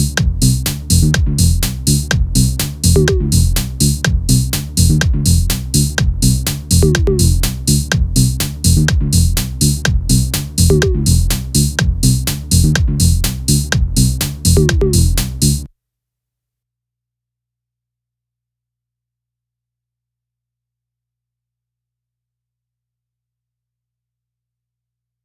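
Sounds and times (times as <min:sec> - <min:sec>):
quirky music: 0:00.2 - 0:15.7.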